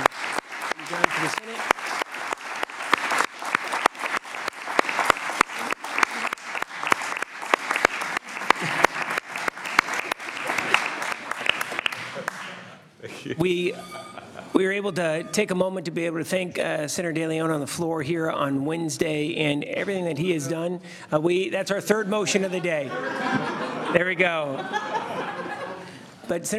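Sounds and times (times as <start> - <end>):
round of applause: 0.0 - 12.7
laughter: 0.0 - 15.3, 21.9 - 26.3
speech: 1.2 - 1.5, 13.4 - 14.0, 14.6 - 25.0, 26.3 - 26.5.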